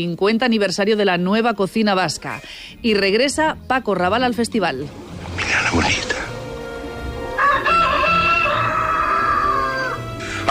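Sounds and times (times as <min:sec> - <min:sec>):
speech: 0:00.0 - 0:06.1
rooster crowing: 0:07.2 - 0:10.1.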